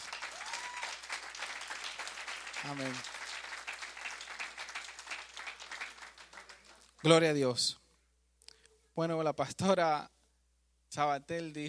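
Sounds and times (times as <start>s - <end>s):
audience applauding: 0.0s - 7.2s
speech: 2.6s - 3.2s, 7.0s - 7.8s, 9.0s - 10.2s, 10.9s - 11.6s.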